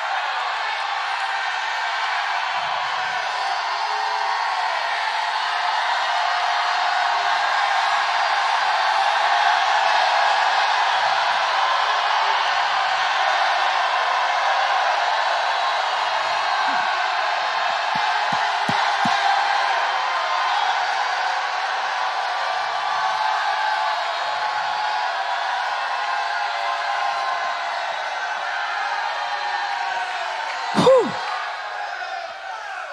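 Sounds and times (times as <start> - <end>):
large crowd roaring and cheering: 0.0 - 32.9
shouts and whoops: 0.0 - 32.9.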